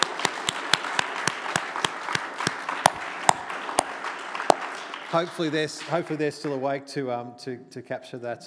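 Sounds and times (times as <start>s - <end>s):
rhythmic hand claps: 0.0s - 6.2s
softer scattered applause from a group: 0.0s - 6.6s
speech: 5.1s - 8.4s.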